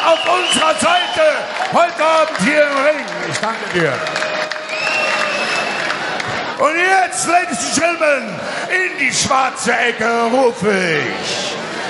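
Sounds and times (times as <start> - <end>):
crowd clapping: 0.0 - 6.8
speech: 0.5 - 4.2, 6.6 - 11.5.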